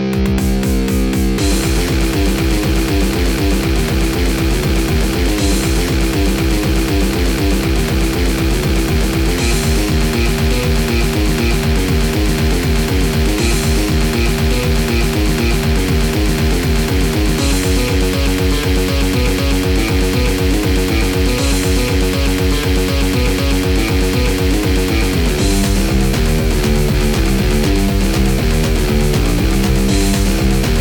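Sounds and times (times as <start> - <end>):
game soundtrack music: 0.1 - 30.7.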